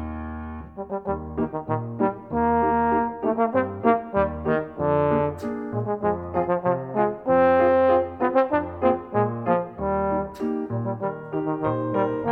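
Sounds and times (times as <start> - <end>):
trombone solo: 0.4 - 12.3.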